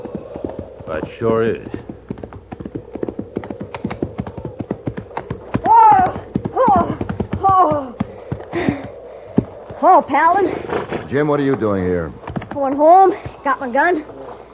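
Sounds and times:
horse hooves clip-clopping: 0.0 - 13.7
speech: 0.9 - 1.9, 9.9 - 14.2.

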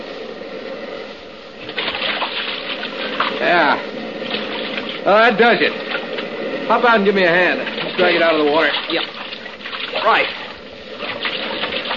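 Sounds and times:
boat moving through shallow water: 1.6 - 6.4, 7.3 - 11.9
speech: 3.4 - 3.9, 5.1 - 6.0, 6.7 - 9.2, 10.0 - 10.4.

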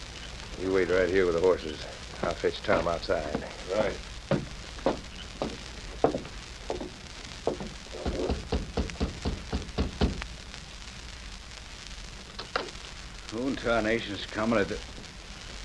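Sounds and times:
low steady hiss: 0.0 - 15.6
speech: 0.6 - 4.4, 13.6 - 14.9
heavy pounding on a door: 4.3 - 6.2, 7.5 - 10.2.

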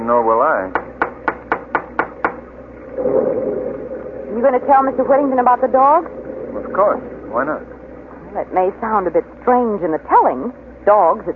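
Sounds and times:
speech: 0.0 - 0.8, 3.0 - 3.7, 4.3 - 7.7, 8.4 - 11.3
knocking on a front door: 0.7 - 2.4.

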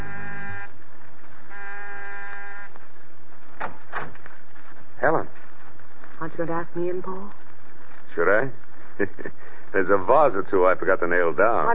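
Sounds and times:
doorbell buzzing: 0.0 - 0.7, 1.5 - 2.7
speech: 6.3 - 7.4, 8.2 - 11.7.

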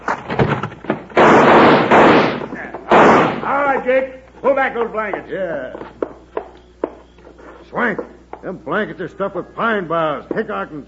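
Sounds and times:
heavy gunshots fired into bunks in an old western radio drama: 1.1 - 3.6
speech: 3.8 - 5.8, 7.7 - 10.8.

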